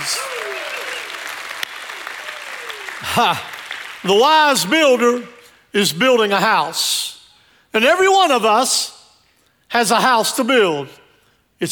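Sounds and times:
audience hand clapping: 0.0 - 4.7
speech: 3.0 - 7.0, 7.7 - 9.0, 9.7 - 11.0.

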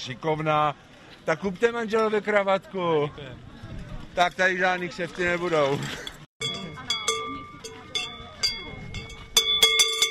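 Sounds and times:
speech: 0.0 - 3.5, 4.2 - 6.0
bell of carnival procession horse figure clanking: 6.4 - 10.1.

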